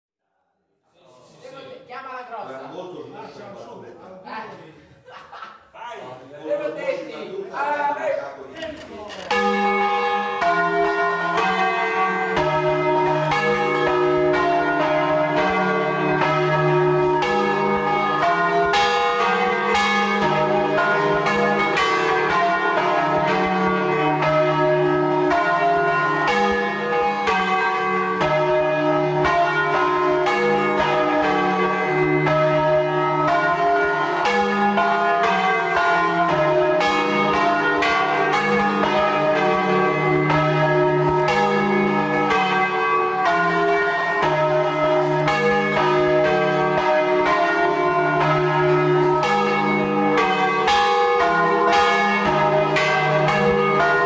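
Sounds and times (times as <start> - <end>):
laughter: 2.7 - 7.5
church bells rung by bell ringers in doppio ribattuto: 9.1 - 54.0.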